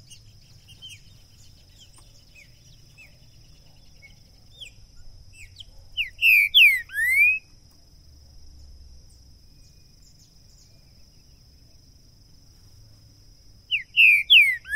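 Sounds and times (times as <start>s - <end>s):
green-winged saltator song of rich downslurred whistles: 0.0s - 7.5s, 13.7s - 14.7s.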